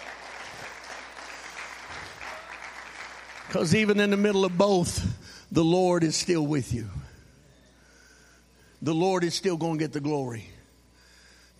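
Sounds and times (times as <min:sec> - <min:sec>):
audience clapping hands: 0:00.0 - 0:04.8
speech: 0:03.5 - 0:07.0, 0:08.8 - 0:10.5.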